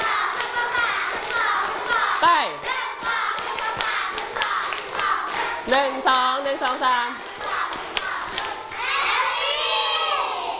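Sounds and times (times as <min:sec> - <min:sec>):
children clapping hands in rhythm: 0:00.0 - 0:09.6
speech: 0:05.7 - 0:07.3.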